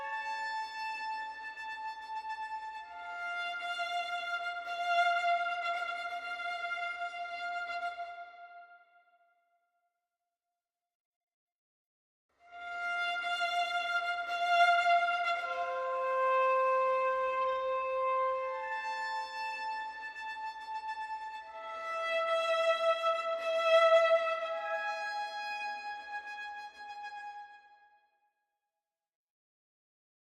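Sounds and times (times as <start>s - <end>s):
violin only: 0.0s - 8.6s, 12.5s - 27.6s.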